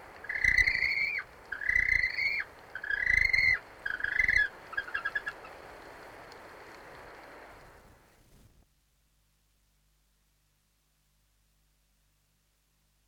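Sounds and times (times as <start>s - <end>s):
yellow-eyed penguin: 0.2s - 5.4s.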